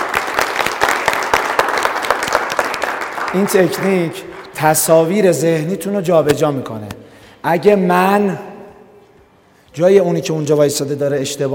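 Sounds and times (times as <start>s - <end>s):
audience applause: 0.0s - 4.5s
speech: 3.3s - 8.5s, 9.8s - 11.5s.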